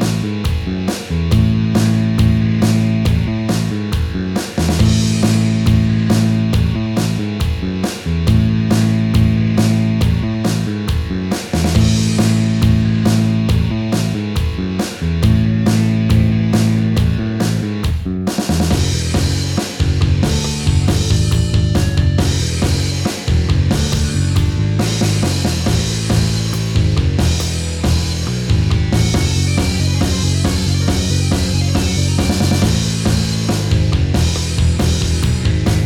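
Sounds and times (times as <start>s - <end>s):
bass drum line: 0.0s - 35.8s.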